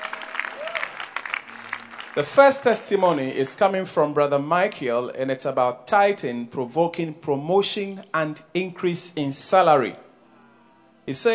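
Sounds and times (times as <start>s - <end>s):
audience applause: 0.0s - 3.2s
speech: 2.1s - 10.0s, 11.1s - 11.3s.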